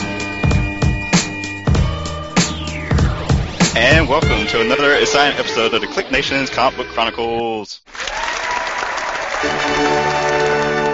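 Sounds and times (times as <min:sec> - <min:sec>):
music: 0:00.0 - 0:07.8, 0:09.1 - 0:10.9
speech: 0:04.0 - 0:08.2
studio audience applause: 0:07.9 - 0:10.9.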